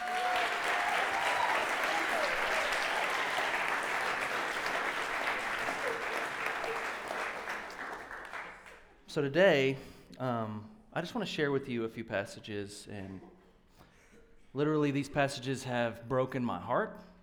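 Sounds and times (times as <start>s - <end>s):
audience clapping: 0.0s - 8.9s
speech: 9.2s - 13.3s, 14.6s - 17.1s.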